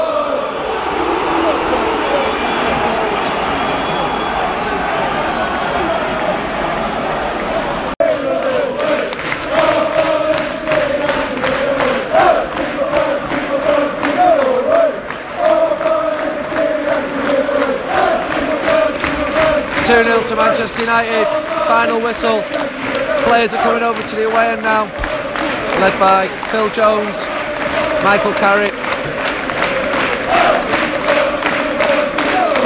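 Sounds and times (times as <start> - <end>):
football away fans singing chants: 0.0 - 32.6
rhythmic clapping: 8.0 - 32.6
speech: 19.9 - 22.6, 23.3 - 25.0, 25.8 - 27.3, 28.0 - 28.8.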